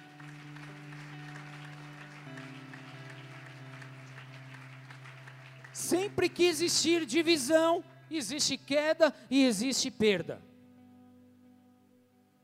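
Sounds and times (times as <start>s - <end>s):
audience applauding: 0.0s - 7.0s
speech: 5.8s - 10.5s.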